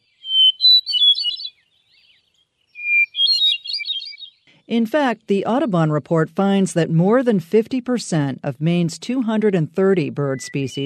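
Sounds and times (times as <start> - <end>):
hermit thrush singing: 0.0 - 4.8
speech: 4.7 - 10.8.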